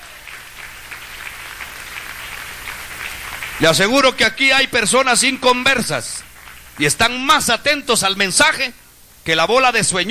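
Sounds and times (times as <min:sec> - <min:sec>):
audience clapping: 0:00.0 - 0:04.2, 0:06.0 - 0:07.2
speech: 0:03.6 - 0:10.1.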